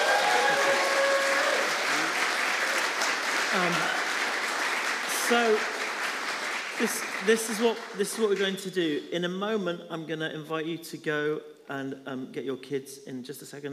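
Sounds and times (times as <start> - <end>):
audience cheering: 0.0 - 7.3
speech: 5.3 - 5.7, 6.8 - 13.7.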